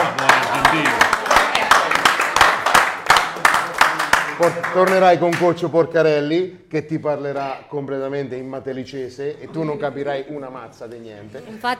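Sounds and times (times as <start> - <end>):
audience applause: 0.0 - 5.4
speech: 4.4 - 11.7.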